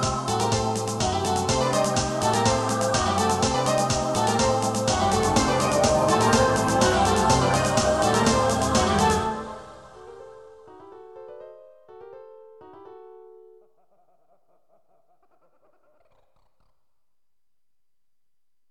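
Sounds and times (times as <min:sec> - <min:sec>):
busy piano playing: 0:00.0 - 0:13.6.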